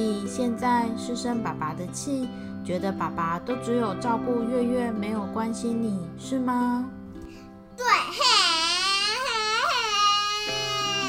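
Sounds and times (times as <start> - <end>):
speech: 0.0 - 7.0, 7.8 - 8.4
young child crying and sobbing: 7.8 - 11.0.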